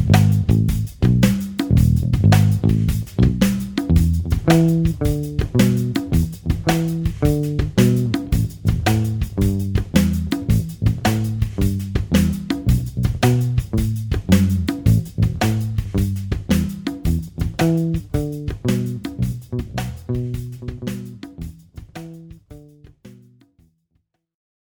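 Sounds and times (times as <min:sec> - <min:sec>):
drums: 0:00.0 - 0:23.5
bass: 0:00.0 - 0:23.7.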